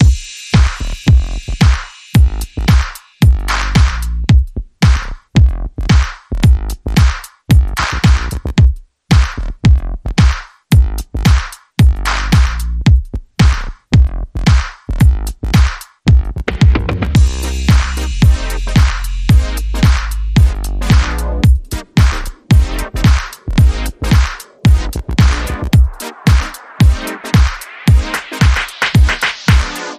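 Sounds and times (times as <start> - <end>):
funk era rhythm: 0.0 - 29.9.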